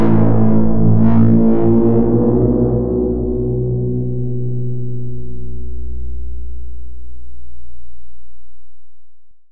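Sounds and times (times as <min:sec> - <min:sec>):
software synthesizer lead: 0:00.0 - 0:05.4.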